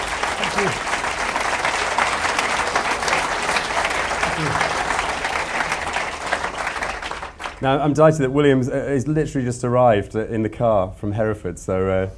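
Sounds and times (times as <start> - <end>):
audience applause welcoming a speaker: 0.0 - 7.8
speech: 0.6 - 0.9, 7.6 - 12.1.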